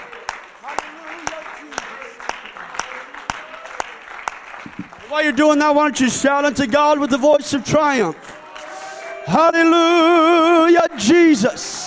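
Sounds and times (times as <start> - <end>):
audience hand clap of praise: 0.0 - 9.1
speech: 5.1 - 8.3, 9.3 - 11.8.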